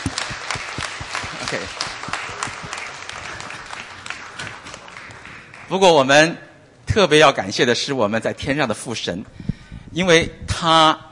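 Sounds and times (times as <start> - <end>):
audience applause for the performers and singers: 0.0 - 5.8
speech: 1.5 - 1.9, 5.7 - 9.4, 10.0 - 11.1.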